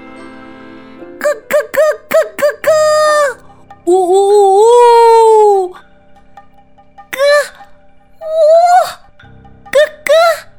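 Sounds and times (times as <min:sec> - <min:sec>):
storyteller's voice imitating turkeys singing together: 0:01.2 - 0:05.8, 0:07.2 - 0:09.0, 0:09.8 - 0:10.5.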